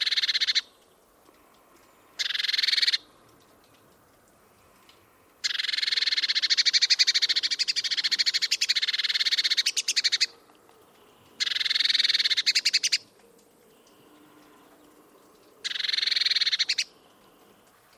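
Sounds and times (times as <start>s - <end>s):
Eurasian blue tit giving a harsh buzzy churr: 0.0s - 0.7s, 2.2s - 3.1s, 5.4s - 10.4s, 11.4s - 13.1s, 15.6s - 17.0s.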